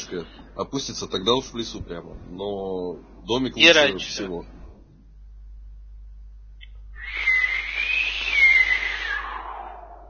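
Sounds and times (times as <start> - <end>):
speech: 0.1 - 4.6
voice imitating distant whistling wind: 7.0 - 10.0.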